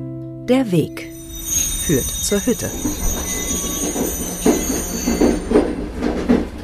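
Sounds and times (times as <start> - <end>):
speech: 0.5 - 1.1, 1.9 - 3.3
rhythmic clunks from the rails: 1.0 - 6.6
slow local train rumbling: 1.1 - 6.6
metallic train wheel squeals: 1.2 - 6.2.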